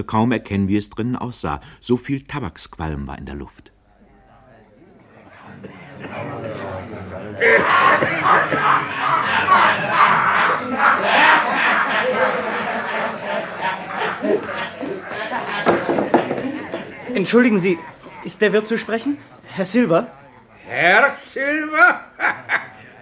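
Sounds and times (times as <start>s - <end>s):
speech: 0.0s - 3.8s, 7.4s - 8.8s, 17.2s - 22.4s
noisy tavern crowd: 3.9s - 23.0s
laughter: 5.3s - 19.5s, 20.7s - 23.0s.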